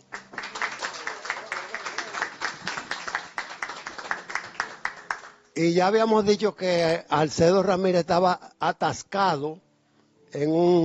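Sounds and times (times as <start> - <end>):
audience applause: 0.0 - 5.4
speech: 5.6 - 9.6, 10.3 - 10.8.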